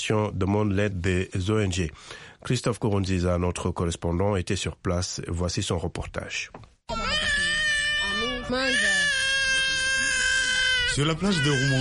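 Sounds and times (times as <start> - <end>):
speech: 0.0 - 6.7, 8.5 - 9.1, 10.9 - 11.7
hungry baby crying: 6.9 - 11.7.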